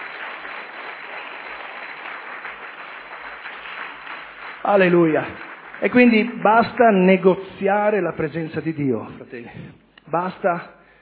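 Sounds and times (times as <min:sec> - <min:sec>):
crowd applause: 0:00.0 - 0:07.3
speech: 0:04.6 - 0:10.8.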